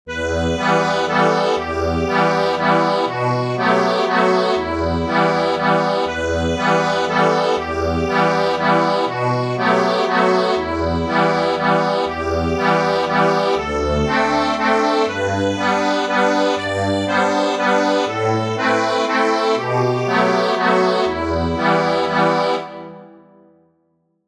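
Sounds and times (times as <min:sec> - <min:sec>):
carol accompaniment: 0:00.1 - 0:23.4.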